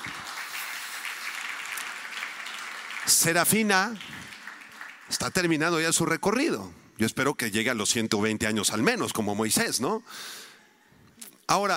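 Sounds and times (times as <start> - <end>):
audience applause: 0.0 - 5.8
speech: 3.1 - 4.2, 5.1 - 10.5, 11.5 - 11.7.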